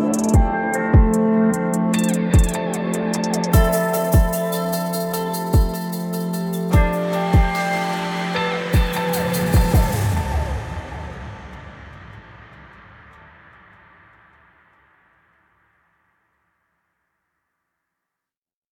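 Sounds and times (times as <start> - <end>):
backtimer theme music: 0.0 - 13.8.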